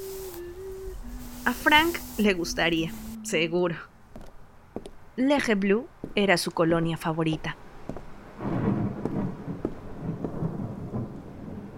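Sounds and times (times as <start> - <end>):
speech: 1.5 - 3.9, 5.2 - 7.6
powerful thunderclap after lightning: 8.3 - 11.7.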